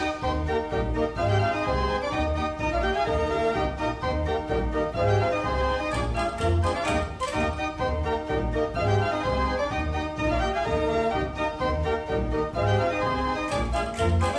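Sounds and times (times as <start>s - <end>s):
band organ playing southern melodies: 0.0s - 14.3s.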